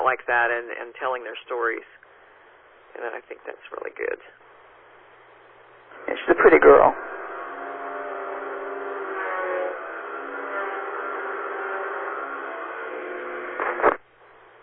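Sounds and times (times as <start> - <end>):
speech: 0.1 - 2.0, 3.0 - 4.4, 6.0 - 7.2
weed whacker trimming outside in rain: 7.0 - 13.8.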